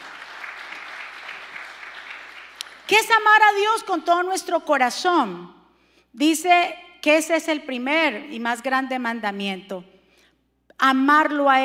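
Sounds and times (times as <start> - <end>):
crowd applauding loudly: 0.0 - 2.9
speech: 2.9 - 9.9, 10.8 - 11.6.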